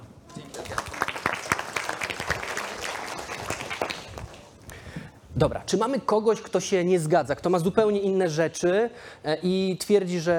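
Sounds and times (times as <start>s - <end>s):
audience applause: 0.4s - 4.5s
speech: 5.4s - 10.3s.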